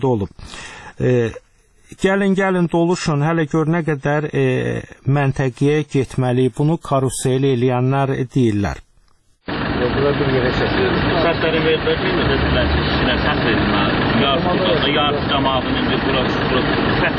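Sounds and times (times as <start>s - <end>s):
speech: 0.0s - 8.8s, 9.9s - 17.1s
white Mercedes minibus engine running: 9.5s - 17.1s.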